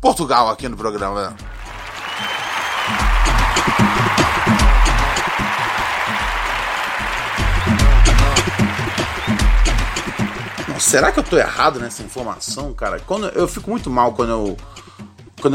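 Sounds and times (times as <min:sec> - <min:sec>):
speech: 0:00.0 - 0:01.5, 0:02.2 - 0:04.2, 0:10.8 - 0:15.5
round of applause: 0:01.4 - 0:12.2.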